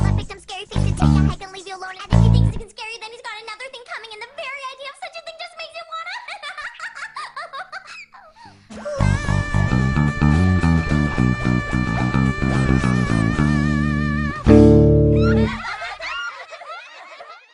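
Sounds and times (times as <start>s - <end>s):
bass guitar cover: 0.0s - 1.4s, 2.1s - 2.6s, 9.0s - 15.6s
laughter: 5.8s - 14.5s, 15.1s - 17.5s.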